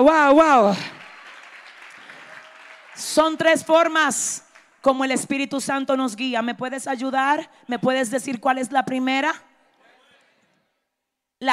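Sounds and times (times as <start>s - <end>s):
speech: 0.0s - 0.9s, 3.0s - 9.5s, 11.4s - 11.5s
audience applause: 0.7s - 3.9s.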